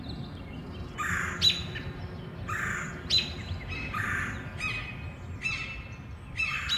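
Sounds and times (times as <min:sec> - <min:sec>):
birds chirping in Forest Hills treetops: 0:00.0 - 0:06.7.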